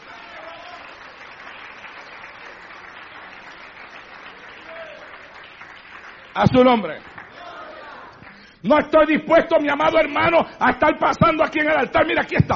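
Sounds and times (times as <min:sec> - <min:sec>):
audience applauding: 0:00.0 - 0:08.6
speech: 0:06.4 - 0:07.1, 0:08.6 - 0:12.5.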